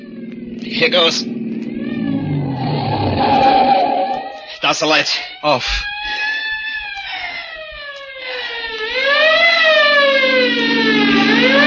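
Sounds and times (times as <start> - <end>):
car engine accelerating as it drives off: 0.0 - 4.5, 9.1 - 11.6
speech: 0.7 - 1.4, 4.7 - 5.9.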